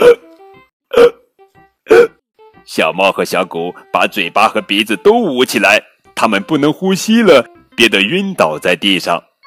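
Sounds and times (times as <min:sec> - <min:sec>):
loud voiced hiccups: 0:00.0 - 0:00.3, 0:00.9 - 0:01.3, 0:01.9 - 0:02.2
speech: 0:02.7 - 0:09.3.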